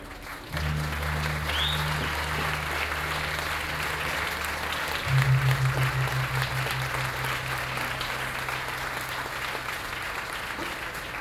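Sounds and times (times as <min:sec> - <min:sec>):
gamelan: 0:00.5 - 0:11.1.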